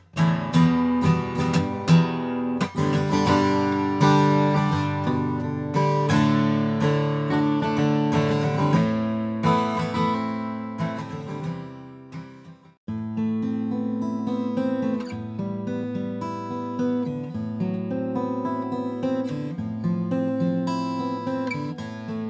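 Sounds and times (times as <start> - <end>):
sunburst acoustic guitar: 0.0 - 22.2.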